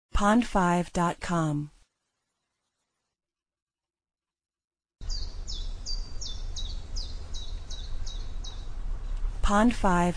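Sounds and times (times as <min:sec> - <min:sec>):
speech: 0:00.2 - 0:01.7, 0:09.5 - 0:10.1
bird chirps: 0:05.0 - 0:09.2.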